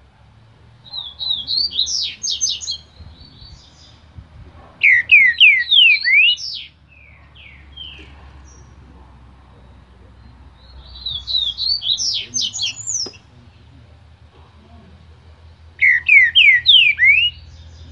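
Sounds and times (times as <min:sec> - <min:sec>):
green-winged saltator singing slurred whistles: 0:00.9 - 0:04.0, 0:04.8 - 0:08.1, 0:10.6 - 0:13.2, 0:15.8 - 0:17.8.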